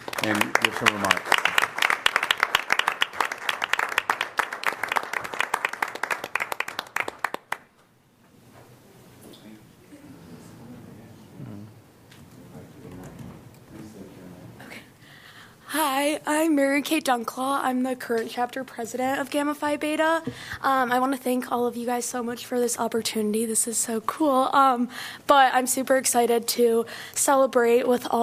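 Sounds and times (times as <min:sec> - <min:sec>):
audience applause: 0:00.0 - 0:07.7
speech: 0:00.2 - 0:01.4, 0:16.2 - 0:28.2.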